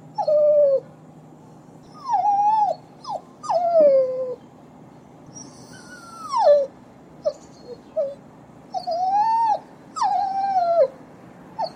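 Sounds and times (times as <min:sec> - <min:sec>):
dog whimpering: 0:00.2 - 0:00.9, 0:01.8 - 0:04.4, 0:05.3 - 0:11.0, 0:11.6 - 0:11.7.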